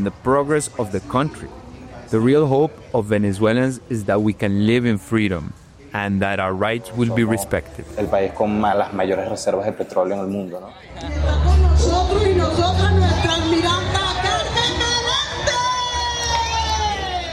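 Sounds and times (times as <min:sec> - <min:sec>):
speech: 0:00.0 - 0:11.9
large government rally crowd chanting and shouting: 0:10.7 - 0:17.3.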